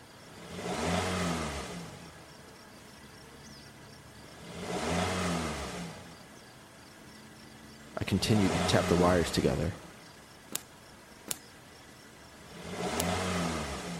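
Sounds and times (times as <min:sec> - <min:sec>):
car engine revving: 0:00.0 - 0:02.4, 0:03.5 - 0:06.4, 0:07.6 - 0:10.0, 0:12.0 - 0:13.9
speech: 0:08.1 - 0:09.8.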